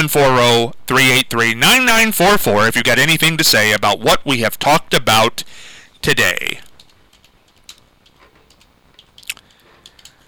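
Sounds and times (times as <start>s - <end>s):
speech: 0.0s - 6.7s
person chewing a muffin: 8.2s - 10.2s.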